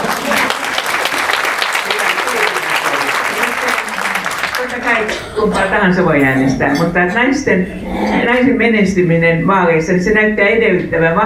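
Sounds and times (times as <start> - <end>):
group applause: 0.0 - 6.9
speech: 5.0 - 11.2.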